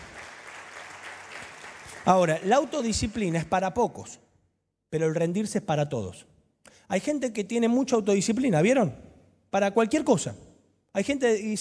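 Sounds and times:
audience applause: 0:00.0 - 0:03.2
speech: 0:02.1 - 0:04.3, 0:04.9 - 0:06.3, 0:06.9 - 0:11.5.

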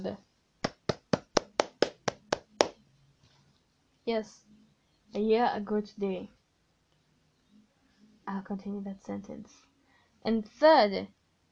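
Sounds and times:
speech: 0:00.0 - 0:00.3, 0:04.1 - 0:04.5, 0:05.1 - 0:06.4, 0:08.3 - 0:11.2
single person clapping hands: 0:00.6 - 0:02.7.

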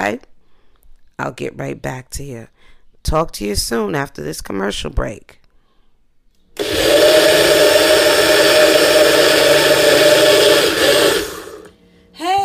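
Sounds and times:
speech: 0:00.0 - 0:00.3, 0:01.2 - 0:05.4
blender whirring a peanut butter and jelly smoothie: 0:06.6 - 0:11.8.

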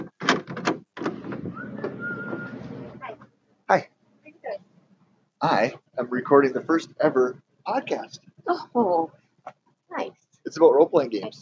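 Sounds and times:
door latch clunking and rattling: 0:00.0 - 0:02.0
door hinge squeaking: 0:00.3 - 0:03.0
speech: 0:03.7 - 0:04.0, 0:05.4 - 0:09.2, 0:10.5 - 0:11.3.

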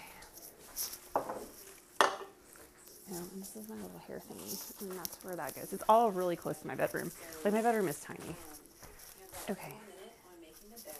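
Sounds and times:
faint shuffling: 0:00.0 - 0:10.9
can and glass set on a dining room table: 0:01.1 - 0:02.4
speech: 0:03.1 - 0:08.6, 0:09.5 - 0:09.9.

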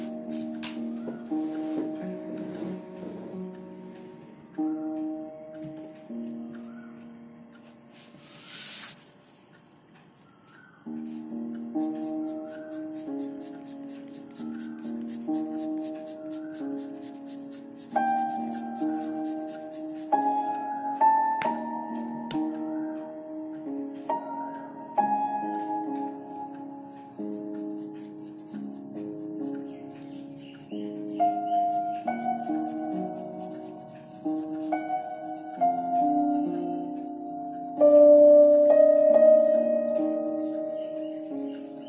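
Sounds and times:
dark academia music: 0:00.0 - 0:41.8
pencil scratchy rub: 0:07.9 - 0:09.4, 0:11.8 - 0:20.6, 0:27.6 - 0:41.8
clock ticking: 0:09.4 - 0:20.7, 0:25.5 - 0:41.8.

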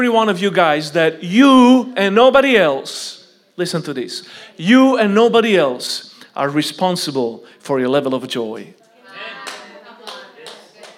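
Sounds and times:
speech: 0:00.0 - 0:09.4
crowd noise and voices: 0:08.8 - 0:10.9
audience clapping in rhythm: 0:09.4 - 0:10.9.

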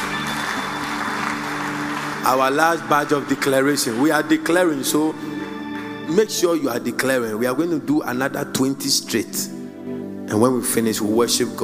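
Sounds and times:
audience clapping: 0:00.0 - 0:06.2
speech: 0:02.2 - 0:05.4, 0:06.1 - 0:09.6, 0:10.3 - 0:11.6.

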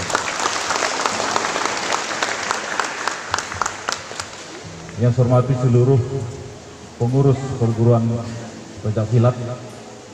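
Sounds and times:
audience applause: 0:00.0 - 0:05.0
speech: 0:05.0 - 0:06.4, 0:07.0 - 0:09.7.

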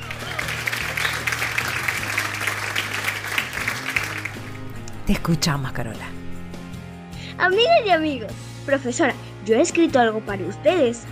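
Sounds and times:
crowd clapping: 0:00.0 - 0:04.9
speech: 0:05.1 - 0:06.2, 0:07.4 - 0:11.0.

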